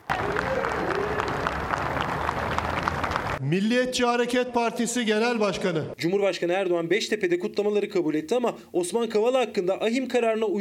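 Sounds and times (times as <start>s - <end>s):
crowd applauding and cheering: 0.0s - 3.4s
speech: 3.4s - 10.5s.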